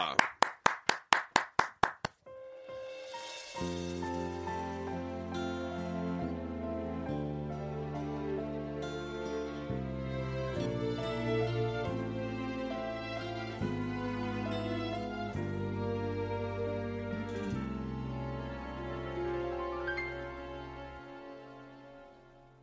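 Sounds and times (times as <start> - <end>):
audience clapping in unison: 0.0 - 2.2
sustained instrumental music: 2.3 - 22.6.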